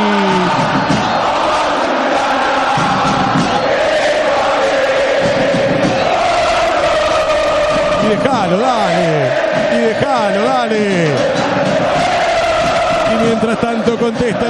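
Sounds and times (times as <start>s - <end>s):
San Lorenzo football stadium crowd chanting: 0.0s - 14.4s
speech: 9.9s - 11.4s, 13.1s - 14.4s.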